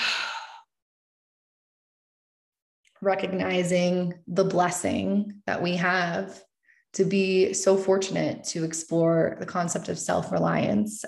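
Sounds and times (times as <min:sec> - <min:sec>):
deep exhale during a yoga nidra practice: 0:00.0 - 0:00.7
speech: 0:03.0 - 0:11.0.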